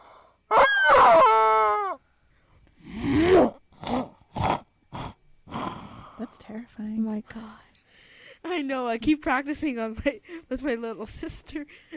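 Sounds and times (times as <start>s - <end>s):
person imitating a chicken: 0.0s - 2.0s, 2.9s - 5.7s
speech: 6.5s - 7.0s, 8.6s - 11.9s.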